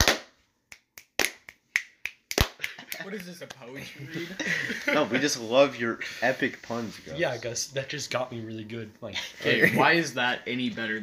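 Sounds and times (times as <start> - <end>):
slow clap: 0.0 - 3.6
laughter: 2.6 - 5.7, 9.1 - 10.1
speech: 3.0 - 11.0.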